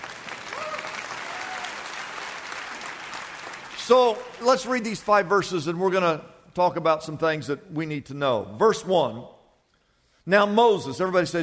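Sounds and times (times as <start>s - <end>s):
audience applause: 0.0s - 5.0s
speech: 3.9s - 9.4s, 10.3s - 11.4s.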